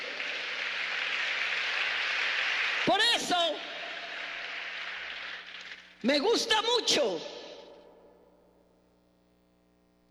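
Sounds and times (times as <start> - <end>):
audience applause: 0.0 - 5.9
speech: 2.8 - 3.7, 6.0 - 7.4.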